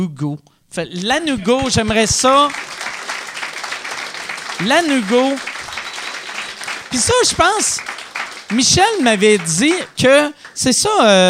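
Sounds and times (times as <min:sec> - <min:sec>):
speech: 0:00.0 - 0:02.9, 0:04.6 - 0:05.5, 0:06.9 - 0:07.9, 0:08.5 - 0:11.2
audience applause: 0:01.1 - 0:11.2.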